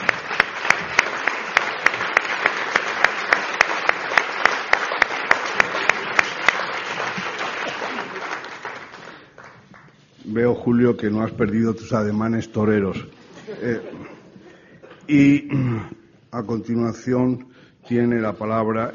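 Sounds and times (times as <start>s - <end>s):
audience applause for sculptor: 0.0s - 10.0s
speech: 10.4s - 14.1s, 15.1s - 18.9s
laughter: 13.2s - 15.1s.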